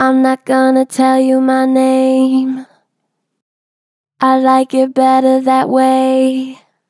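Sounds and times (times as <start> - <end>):
gentle flat-pitch vocals: 0.0 - 2.9, 4.2 - 6.8.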